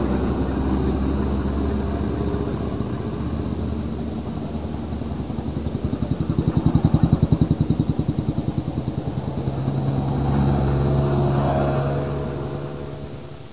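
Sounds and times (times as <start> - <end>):
traffic: 0.0 - 13.5
subway train: 9.6 - 13.5.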